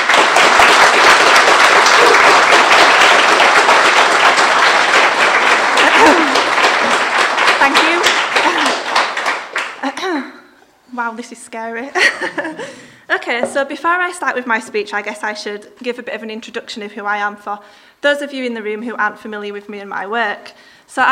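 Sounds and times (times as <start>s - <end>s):
audience applause: 0.0s - 9.8s
speech: 11.0s - 21.1s.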